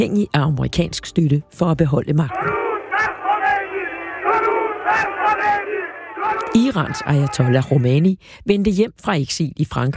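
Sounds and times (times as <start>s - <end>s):
speech: 0.0s - 3.1s, 4.9s - 9.9s
large crowd chanting and shouting welcoming Ayatollah Khomeini at Tehran airport: 2.3s - 8.0s.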